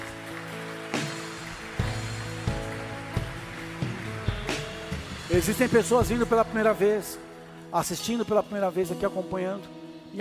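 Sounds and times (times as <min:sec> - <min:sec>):
audience applauding: 0:00.0 - 0:06.7
speech: 0:05.3 - 0:10.1.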